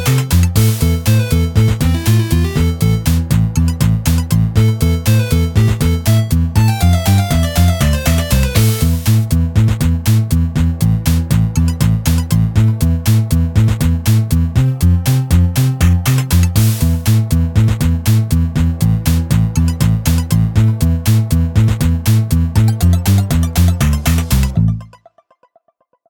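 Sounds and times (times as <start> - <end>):
music: 0.0 - 25.8.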